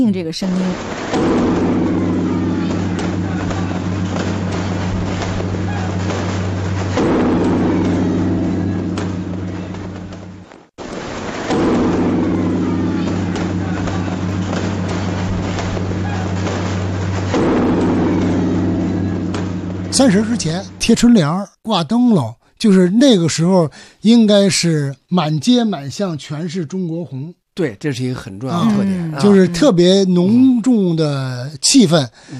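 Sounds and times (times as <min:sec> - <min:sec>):
speech: 0:00.0 - 0:01.8, 0:20.0 - 0:32.3
firecrackers crackling: 0:00.5 - 0:20.1
bell tower bells ringing: 0:01.2 - 0:10.5, 0:11.6 - 0:21.4, 0:28.5 - 0:30.7.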